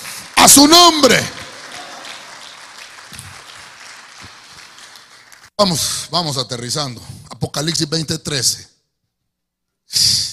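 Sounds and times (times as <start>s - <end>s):
audience clapping: 0.0s - 5.6s
speech: 0.4s - 1.4s, 5.6s - 8.7s, 9.9s - 10.2s.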